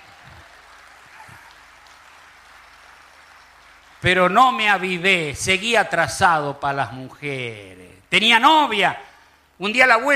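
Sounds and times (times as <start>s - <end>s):
audience applause: 0.0s - 5.0s
speech: 4.0s - 10.1s.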